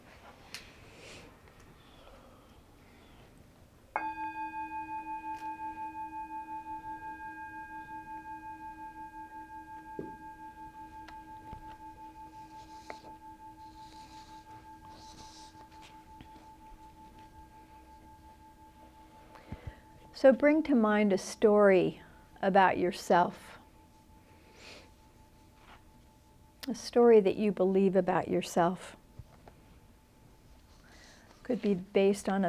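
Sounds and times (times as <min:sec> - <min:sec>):
bell ringing: 0:04.0 - 0:20.2
speech: 0:20.2 - 0:23.5, 0:26.8 - 0:29.0, 0:31.5 - 0:32.4.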